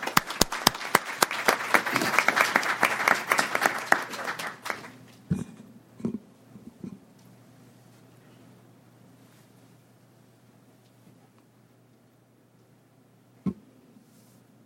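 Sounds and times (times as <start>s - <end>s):
audience clapping to welcome the South African ambassador: 0.0s - 5.2s.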